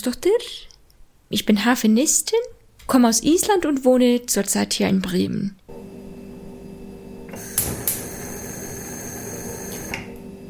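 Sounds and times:
speech: 0.0s - 0.7s, 1.3s - 5.8s
refrigerator humming: 5.7s - 10.4s
sharp clicks: 7.3s - 8.1s.

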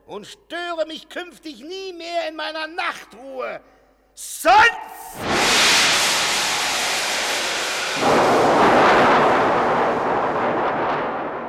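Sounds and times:
speech: 0.1s - 5.7s
lightning strike: 5.0s - 11.4s
thunder crack and rumble: 5.2s - 11.4s.

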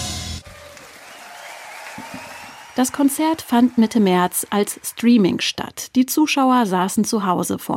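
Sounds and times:
recorded applause and cheering played from tape: 0.3s - 5.3s
speech: 2.8s - 7.7s.

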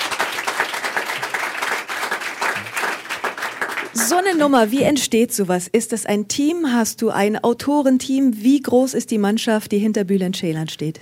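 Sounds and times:
audience applause: 0.0s - 4.3s
speech: 4.0s - 11.0s.

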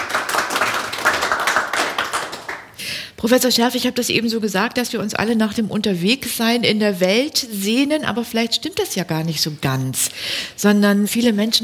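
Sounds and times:
audience applause: 0.0s - 2.7s
speech: 3.2s - 11.6s.

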